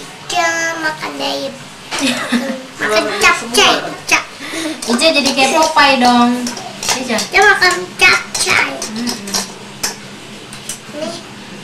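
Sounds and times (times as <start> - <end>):
speech: 0.8 - 8.8
wok and dishes being handled: 3.0 - 10.9.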